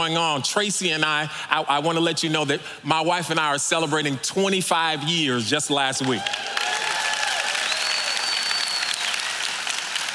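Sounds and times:
speech: 0:00.0 - 0:06.7
audience applause: 0:06.2 - 0:10.1.

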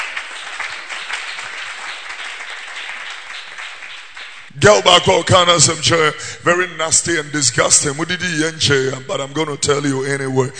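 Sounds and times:
clapping: 0:00.0 - 0:04.5
speech: 0:04.6 - 0:10.5.

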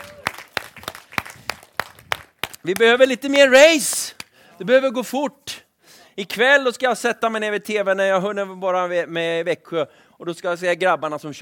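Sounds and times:
slow hand claps: 0:00.0 - 0:03.0
speech: 0:02.6 - 0:05.5, 0:06.2 - 0:11.3.

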